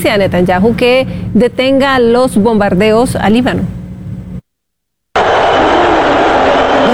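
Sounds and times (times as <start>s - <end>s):
speech: 0.0s - 3.8s
arena crowd booing: 5.2s - 6.9s.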